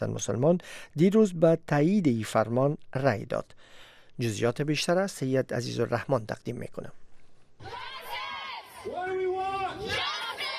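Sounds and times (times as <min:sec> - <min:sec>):
speech: 0:00.0 - 0:07.0, 0:07.6 - 0:07.9
protesters shouting outside the US Supreme Court: 0:07.6 - 0:10.5.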